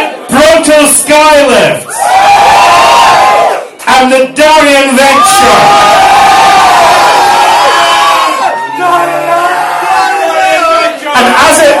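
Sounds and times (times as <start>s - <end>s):
speech: 0.6s - 1.9s, 4.0s - 6.1s
audience applause and cheering: 1.9s - 3.7s, 5.2s - 10.9s.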